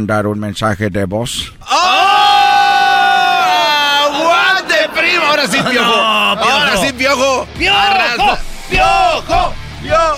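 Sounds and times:
speech: 0.0 - 2.0, 5.0 - 10.1
crowd cheering: 1.6 - 9.6
laughter: 2.9 - 7.3.

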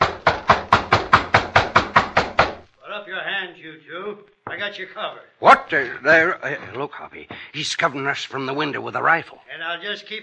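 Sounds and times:
knocking on a gate: 0.0 - 2.7
speech: 3.7 - 10.2.

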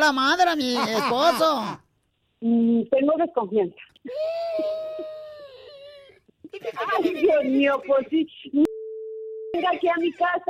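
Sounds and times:
speech: 0.0 - 1.8, 2.4 - 4.7, 6.5 - 8.7, 9.6 - 10.4
child wailing: 4.1 - 6.2
laughter: 6.4 - 7.8.

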